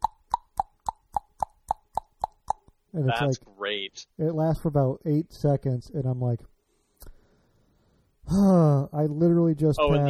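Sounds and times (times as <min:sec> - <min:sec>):
person imitating car motor clicking with mouth: 0:00.0 - 0:02.8
speech: 0:02.9 - 0:06.5, 0:08.3 - 0:10.0.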